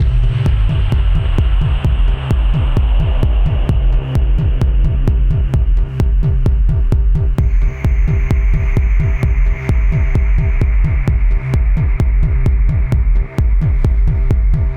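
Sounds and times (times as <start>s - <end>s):
combat music loop: 0.0s - 14.7s.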